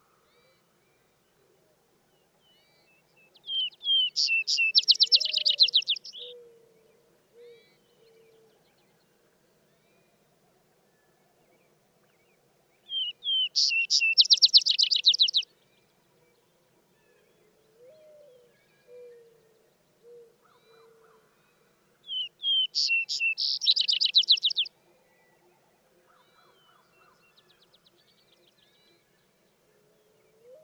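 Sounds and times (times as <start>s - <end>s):
vesper sparrow song: 3.4s - 6.4s, 12.9s - 15.4s, 22.1s - 24.7s.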